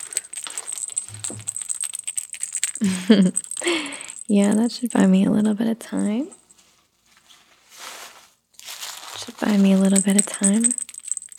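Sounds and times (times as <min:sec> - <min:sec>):
baby chewing and shaking a rattle: 0:00.0 - 0:06.5, 0:09.3 - 0:11.3
speech: 0:01.2 - 0:01.6, 0:02.8 - 0:06.4, 0:09.5 - 0:10.8.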